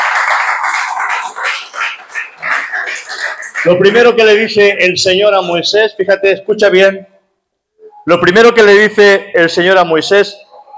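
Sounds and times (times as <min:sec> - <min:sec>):
audience applause: 0:00.0 - 0:04.2
speech: 0:03.6 - 0:07.1, 0:08.0 - 0:10.4.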